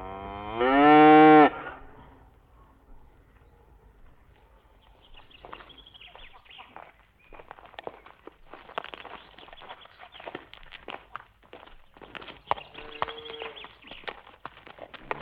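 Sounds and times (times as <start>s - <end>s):
cattle mooing: 0.0s - 1.8s, 12.7s - 13.6s.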